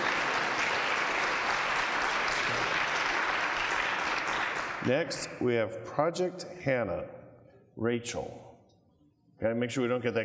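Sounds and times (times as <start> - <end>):
audience applause: 0.0 - 4.9
speech: 4.8 - 7.2, 7.8 - 8.5, 9.4 - 10.2.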